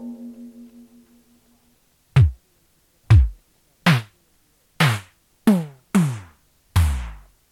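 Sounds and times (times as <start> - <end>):
Casio RZ-1 drum machine beat: 2.2 - 2.4, 3.1 - 4.2, 4.8 - 7.4.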